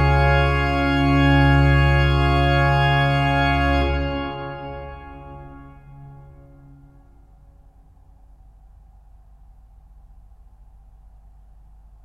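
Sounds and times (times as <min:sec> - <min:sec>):
organ playing plein jeu gravement: 0:00.0 - 0:07.2.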